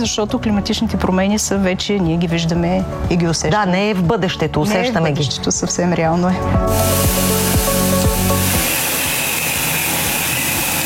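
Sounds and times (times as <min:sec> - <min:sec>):
speech: 0:00.0 - 0:07.4
fertilizer mixer injecting into a drip irrigation line: 0:06.7 - 0:10.8.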